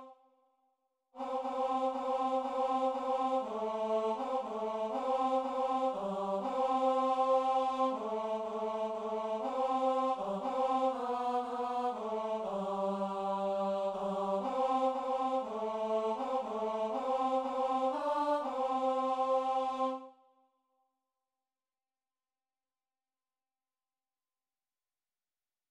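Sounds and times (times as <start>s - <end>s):
tenor singing: 1.2s - 20.0s.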